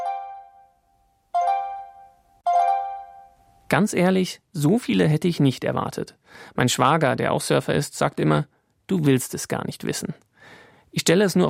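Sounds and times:
smartphone app notification chime: 0.0s - 3.5s
speech: 3.7s - 11.4s.

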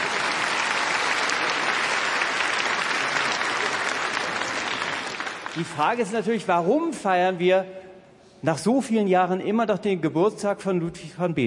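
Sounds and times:
audience applause: 0.0s - 6.1s
speech: 5.6s - 7.8s, 8.4s - 11.4s.

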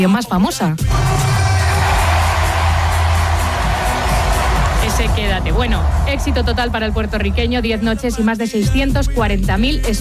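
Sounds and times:
speech: 0.0s - 1.3s, 5.0s - 9.9s
large concert crowd roaring and shouting: 0.9s - 7.4s.

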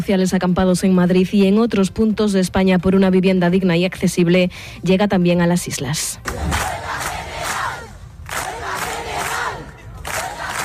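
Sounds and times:
speech: 0.0s - 6.8s
crowd chanting at an open housing assembly in Las Palmas de Gran Canaria: 6.2s - 10.6s.

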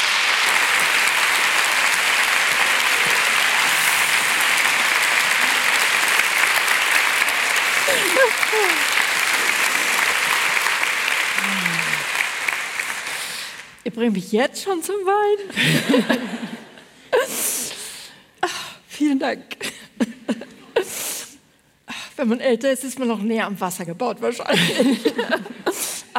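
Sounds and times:
audience applause: 0.0s - 13.8s
laughter: 1.8s - 10.5s, 15.5s - 16.9s, 24.5s - 25.8s
speech: 8.5s - 8.9s, 13.9s - 16.5s, 19.0s - 19.7s, 22.2s - 25.6s.

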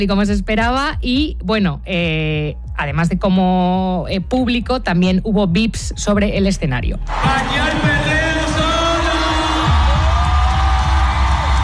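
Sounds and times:
speech: 0.0s - 8.2s
large crowd roaring and cheering: 7.1s - 11.6s
steady applause: 7.1s - 11.6s.

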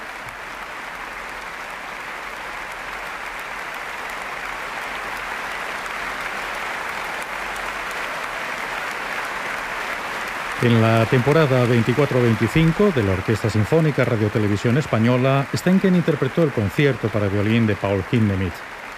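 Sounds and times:
applause after an orchestral performance: 0.0s - 18.9s
speech: 10.6s - 18.8s.

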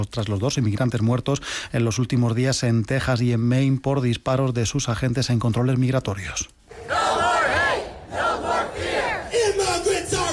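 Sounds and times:
speech: 0.0s - 7.0s
protest crowd chanting: 6.7s - 10.3s.

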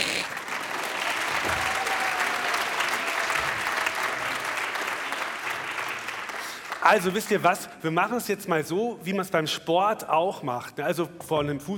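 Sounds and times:
audience clapping hands: 0.0s - 7.4s
speech: 6.8s - 11.7s.

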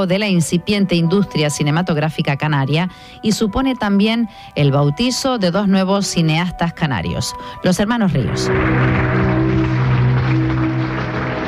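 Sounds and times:
speech: 0.0s - 9.7s
audience applause at film premiere in Cine Víctor, Santa Cruz de Tenerife: 8.5s - 11.4s.

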